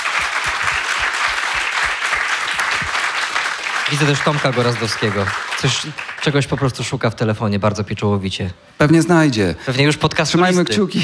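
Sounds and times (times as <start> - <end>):
audience applause: 0.0 - 7.0
speech: 3.9 - 11.0.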